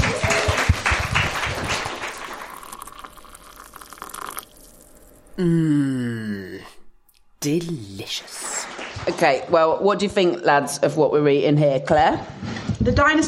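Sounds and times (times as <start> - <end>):
round of applause: 0.0 - 3.2, 7.5 - 9.5
speech: 5.4 - 6.3, 7.4 - 13.2.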